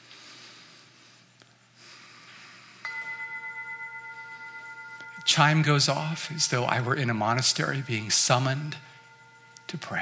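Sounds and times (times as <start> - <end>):
deep breathing in and out through nose: 0.0 - 2.9
speech: 5.3 - 8.9, 9.7 - 9.9.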